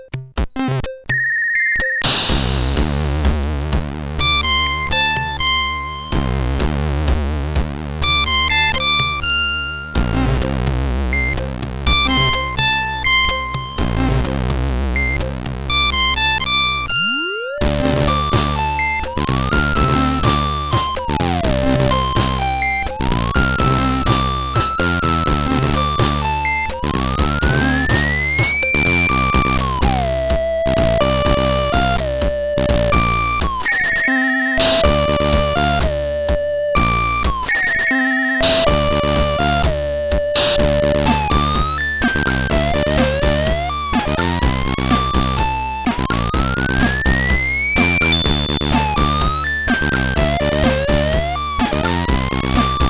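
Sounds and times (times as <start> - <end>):
SID CSG8580R5 chip music: 0.6 - 52.8.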